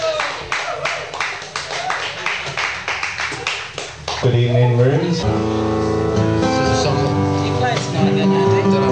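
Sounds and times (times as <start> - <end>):
crowd applauding: 0.0 - 4.6
speech: 4.2 - 8.8.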